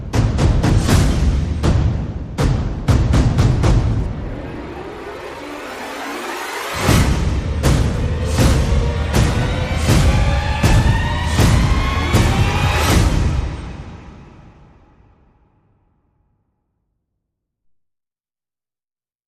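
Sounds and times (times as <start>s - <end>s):
percussion: 0.0s - 15.1s
sound effects: 2.9s - 15.5s.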